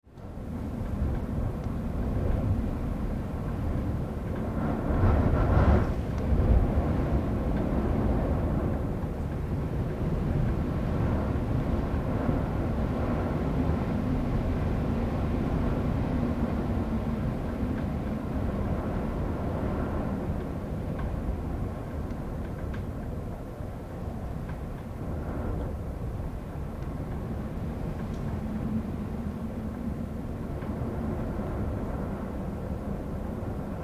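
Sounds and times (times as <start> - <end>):
wind heard from an interior: 0.0 - 33.8.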